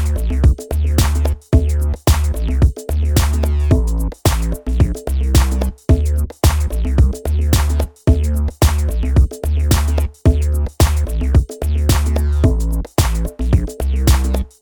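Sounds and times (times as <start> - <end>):
pulled clap: 0.0 - 0.3, 1.0 - 2.5, 3.1 - 4.7, 5.4 - 5.8, 6.4 - 6.9, 7.5 - 8.0, 8.6 - 9.1, 9.7 - 11.2, 11.9 - 14.5
dance drums: 0.0 - 14.5.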